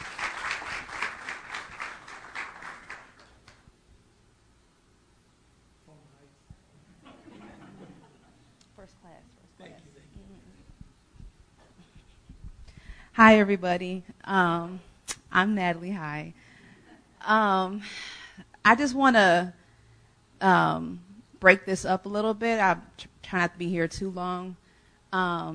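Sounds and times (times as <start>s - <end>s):
crowd applause: 0.0s - 3.6s
laughter: 6.9s - 8.6s
speech: 13.2s - 16.4s, 17.3s - 18.0s, 18.6s - 19.6s, 20.4s - 25.5s.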